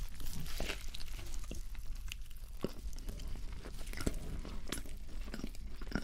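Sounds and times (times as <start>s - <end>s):
wrapper crinkling: 0.0s - 2.6s
loud chewing of a Burger King burger meal: 0.0s - 6.0s.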